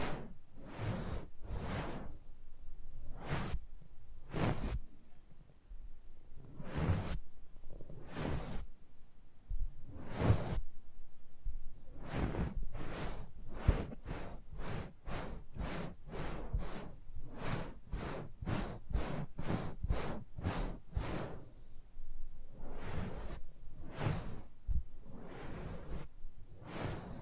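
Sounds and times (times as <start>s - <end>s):
soft brushes and rubs swishing over a microphone: 0.0s - 5.0s, 6.4s - 8.8s, 9.8s - 10.7s, 11.8s - 21.8s, 22.4s - 27.2s.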